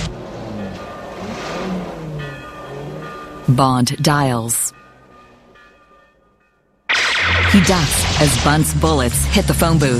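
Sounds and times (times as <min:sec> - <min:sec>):
guard's car accelerating as it pulls onto road: 0:00.0 - 0:03.4
speech: 0:03.5 - 0:04.6, 0:07.6 - 0:09.9.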